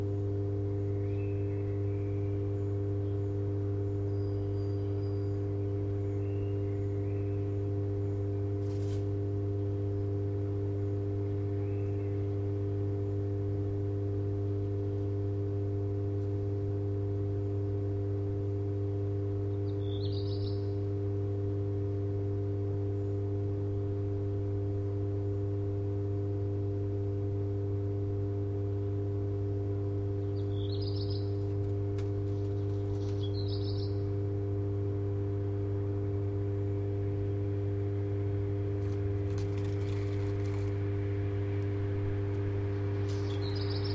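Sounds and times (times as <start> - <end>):
black redstart singing: 0.0 - 8.3, 11.2 - 12.4, 19.5 - 20.9, 30.2 - 34.2, 41.7 - 43.9
steady deep electrical hum: 0.0 - 43.9
faint crackle: 8.4 - 9.2, 31.3 - 33.4, 37.4 - 43.9.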